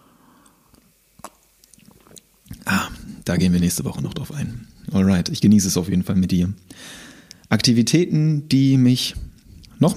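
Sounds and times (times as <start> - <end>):
person sipping peppermint tea: 0.3 - 2.7
speech: 3.2 - 9.2, 9.8 - 9.9.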